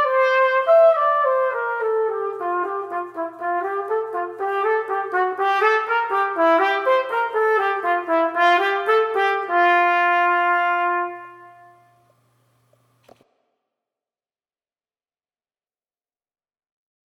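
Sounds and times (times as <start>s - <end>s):
brass music: 0.0s - 12.0s.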